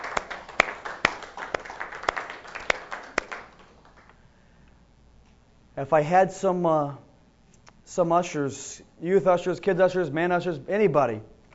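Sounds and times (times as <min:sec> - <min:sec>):
audience applauding: 0:00.0 - 0:04.2
speech: 0:05.8 - 0:07.0, 0:07.9 - 0:11.3.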